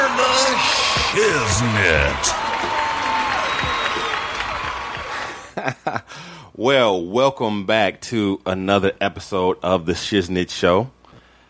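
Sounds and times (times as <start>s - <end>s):
audience applause for a show intro: 0.0s - 5.6s
speech: 1.1s - 2.4s, 6.6s - 11.0s
laughter: 5.1s - 6.1s.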